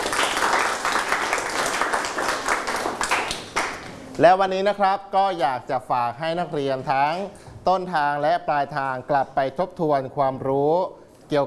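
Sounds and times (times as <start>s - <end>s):
students clapping: 0.0s - 4.0s
speech: 4.2s - 11.4s.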